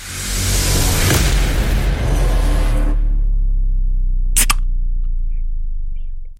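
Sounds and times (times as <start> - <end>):
steady low hum: 0.2 - 6.3
soft drink can tab popping open: 4.4 - 4.6.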